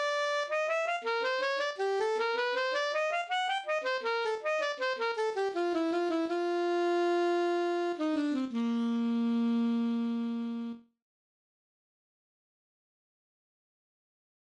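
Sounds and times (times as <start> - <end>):
alto saxophone: 0.0 - 11.0.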